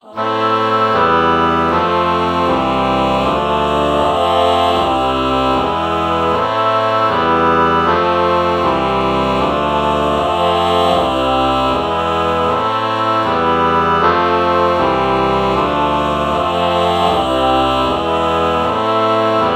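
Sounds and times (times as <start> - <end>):
oboe chord morph: 0.0 - 19.5.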